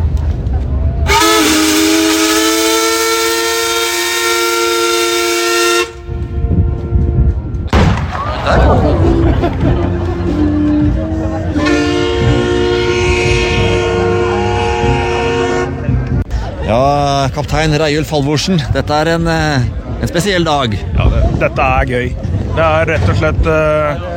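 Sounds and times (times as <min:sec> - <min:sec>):
crowd babble: 0:00.0 - 0:02.5, 0:06.1 - 0:24.1
ship horn salute for paddle steamer Skibladner's 170th anniversary: 0:01.0 - 0:07.7, 0:09.8 - 0:16.2
laughter: 0:08.1 - 0:12.4, 0:15.6 - 0:17.1
speech: 0:17.7 - 0:24.1.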